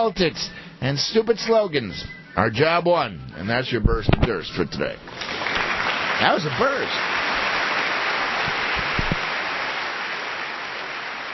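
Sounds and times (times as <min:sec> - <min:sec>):
speech: 0:00.0 - 0:05.6, 0:06.2 - 0:07.2
crowd applause: 0:05.1 - 0:11.3
low thumps: 0:08.5 - 0:09.2.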